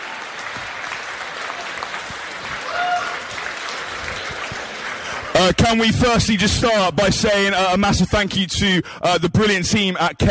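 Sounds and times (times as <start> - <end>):
audience round of applause: 0.0 - 6.2
speech: 5.4 - 10.2.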